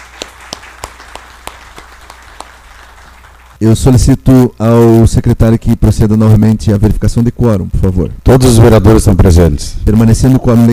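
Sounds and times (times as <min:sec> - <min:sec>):
applause: 0:00.0 - 0:03.6
speech: 0:03.6 - 0:10.7.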